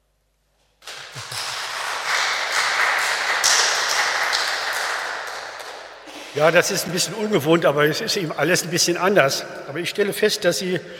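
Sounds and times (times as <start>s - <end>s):
audience clapping hands: 0.8s - 7.4s
speech: 6.4s - 10.9s.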